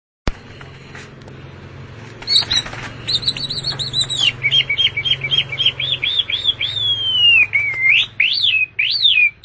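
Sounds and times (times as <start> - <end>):
long-tailed shrike singing: 2.2 - 9.4.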